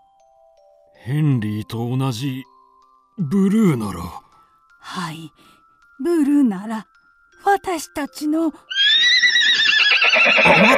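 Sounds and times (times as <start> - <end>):
speech: 1.0 - 2.5, 3.2 - 4.2, 4.8 - 8.7, 10.2 - 10.7
carriage horse neighing: 8.7 - 10.7.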